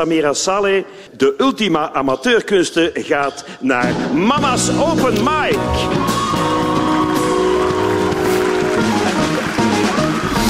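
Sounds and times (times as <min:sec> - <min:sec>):
speech: 0:00.0 - 0:06.2
deafening applause: 0:05.7 - 0:10.4.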